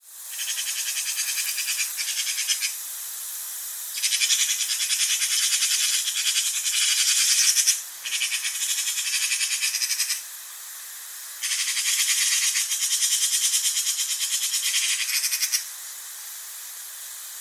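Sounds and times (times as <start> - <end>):
Eurasian magpie chattering: 0.4 - 2.8, 4.0 - 10.2, 11.4 - 15.6.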